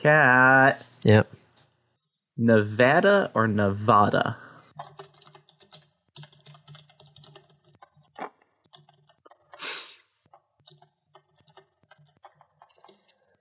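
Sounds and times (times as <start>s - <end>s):
speech: 0.0s - 1.4s, 2.4s - 4.4s
keyboard typing of a message: 4.7s - 9.6s, 10.3s - 13.3s.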